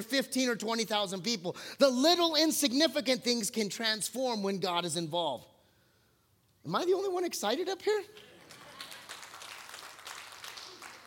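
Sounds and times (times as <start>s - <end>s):
speech: 0.0s - 5.5s, 6.6s - 8.3s
audience clapping: 8.1s - 11.0s.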